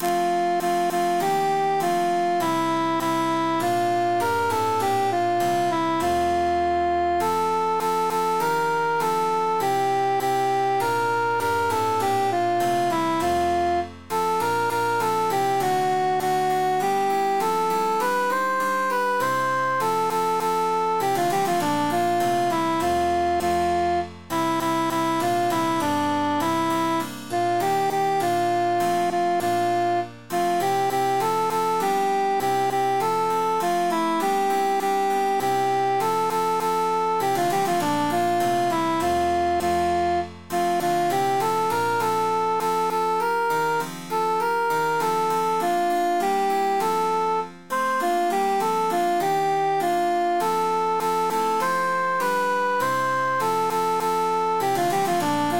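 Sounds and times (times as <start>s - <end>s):
emphasized cantus melody: 0.0s - 55.5s.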